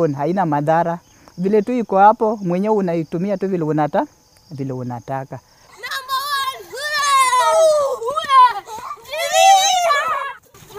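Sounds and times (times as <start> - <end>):
speech: 0.0 - 5.5
happy children's voices near a family home that uses biogas: 5.6 - 10.7.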